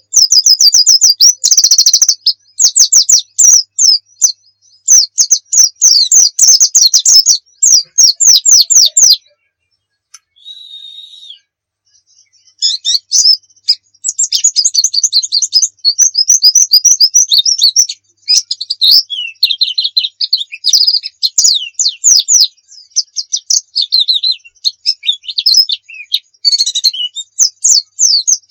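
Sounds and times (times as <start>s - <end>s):
white-eye song: 0.0s - 28.4s.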